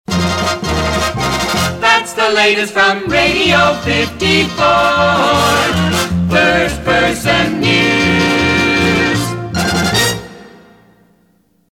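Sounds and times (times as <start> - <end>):
news outro music: 0.1 - 11.4.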